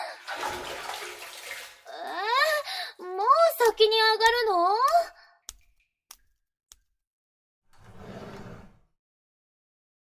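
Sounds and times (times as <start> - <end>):
hot water splashing in a bath: 0.0 - 2.6
speech: 3.7 - 4.9.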